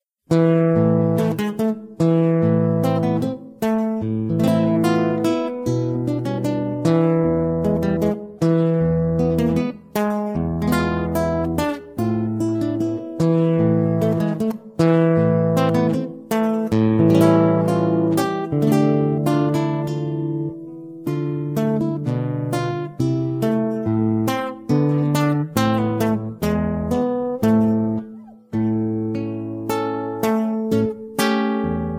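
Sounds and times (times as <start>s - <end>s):
guitar: 0.2s - 31.9s.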